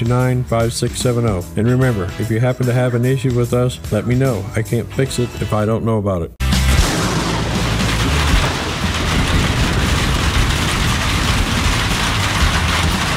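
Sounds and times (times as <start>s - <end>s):
speech: 0.0s - 6.4s
deep rolling thunder: 6.7s - 13.1s
heavy rain: 6.8s - 13.1s.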